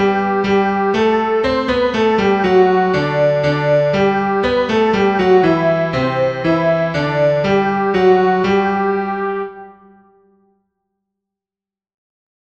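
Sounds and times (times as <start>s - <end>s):
soprano singing: 0.0s - 10.0s.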